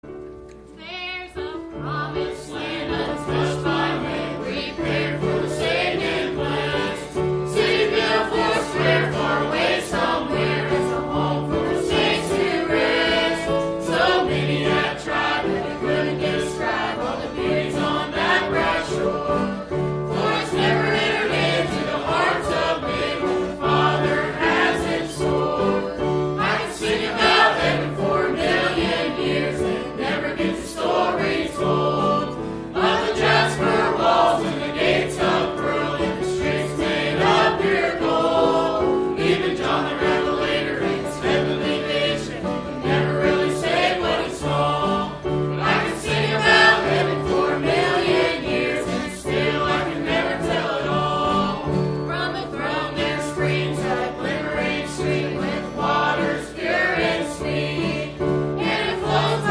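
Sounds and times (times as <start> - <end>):
youth choir singing: 0.8 - 59.4.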